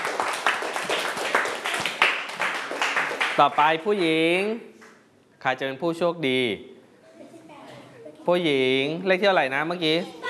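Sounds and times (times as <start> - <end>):
group clapping for a classmate: 0.0 - 4.2
speech: 3.4 - 4.7, 5.4 - 6.8, 8.2 - 10.2.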